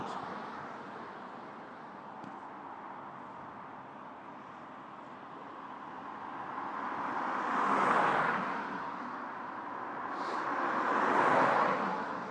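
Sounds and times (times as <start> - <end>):
bus passing by: 0.0 - 2.0, 7.4 - 12.2.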